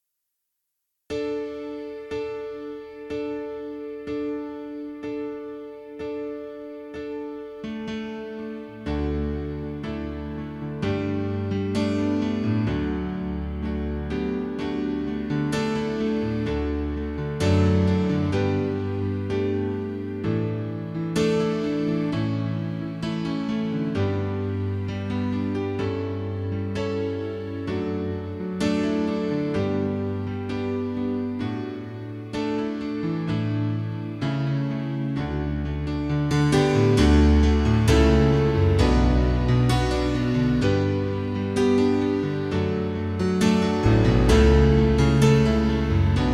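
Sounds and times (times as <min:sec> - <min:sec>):
piano playback in D major: 0:01.1 - 0:46.3.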